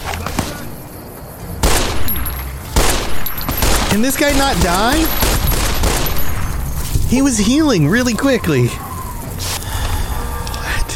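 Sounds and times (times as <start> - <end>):
low rumbling: 0.7 - 10.9
video game gunshots: 1.6 - 6.9
speech: 3.9 - 5.3, 7.1 - 8.8.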